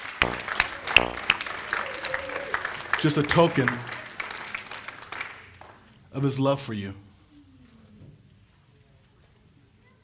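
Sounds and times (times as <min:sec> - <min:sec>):
audience clapping: 0:00.0 - 0:06.0
speech: 0:03.0 - 0:04.0, 0:06.1 - 0:07.1.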